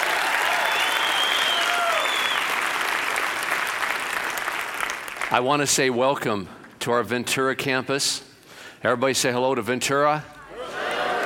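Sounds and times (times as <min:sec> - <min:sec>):
large church crowd applauding a preacher: 0:00.0 - 0:05.4
speech: 0:05.3 - 0:10.4.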